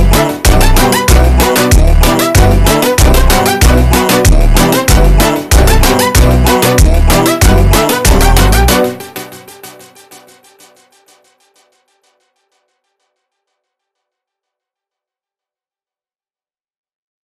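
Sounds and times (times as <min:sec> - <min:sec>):
super slowed montagem music: 0:00.0 - 0:13.2.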